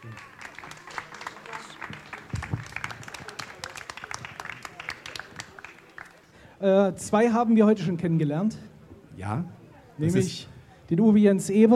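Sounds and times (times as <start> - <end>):
audience applause: 0.0 - 6.3
speech: 6.6 - 11.7.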